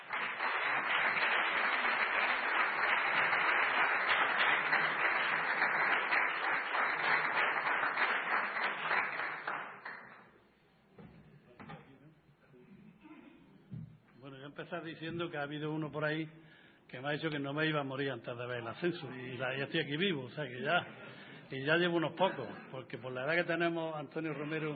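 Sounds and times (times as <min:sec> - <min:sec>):
applause from a large crowd: 0:00.0 - 0:10.1
speech: 0:14.7 - 0:24.7.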